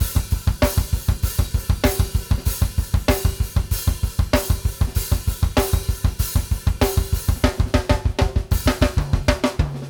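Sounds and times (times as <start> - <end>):
drums: 0.0 - 9.8.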